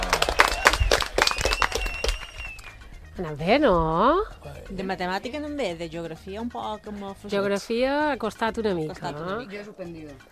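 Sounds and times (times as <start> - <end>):
loud applause: 0.0 - 2.8
speech: 3.2 - 10.3.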